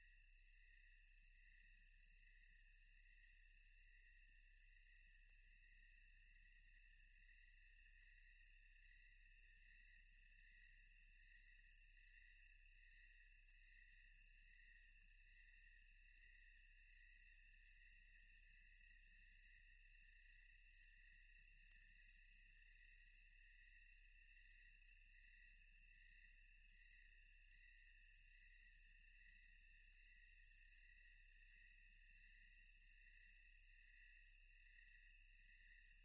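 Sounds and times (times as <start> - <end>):
thick tonal insect chorus: 0.0 - 36.0.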